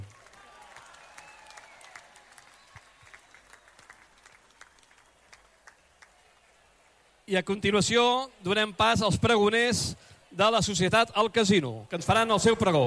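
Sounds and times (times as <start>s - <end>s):
crowd applause at the opening speech of the Festa Major in Sant Andreu de la Barca: 0.0s - 7.0s, 12.0s - 12.8s
speech: 7.3s - 12.8s.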